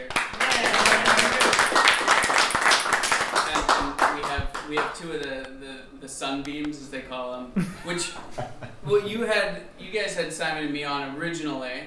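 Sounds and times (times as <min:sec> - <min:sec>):
small group clapping: 0:00.0 - 0:05.5
speech: 0:04.7 - 0:11.8.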